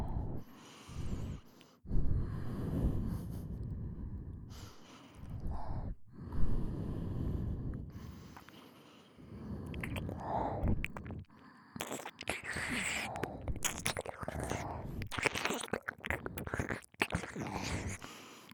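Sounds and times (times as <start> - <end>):
double nose breathing: 0.0 - 18.5
ear licking: 9.6 - 18.5.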